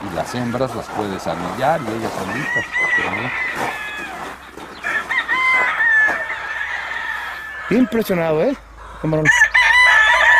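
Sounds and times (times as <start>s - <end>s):
chickens clucking: 0.0s - 9.2s
speech: 0.2s - 3.8s, 7.7s - 9.4s
rooster crowing: 1.2s - 8.3s, 9.2s - 10.3s.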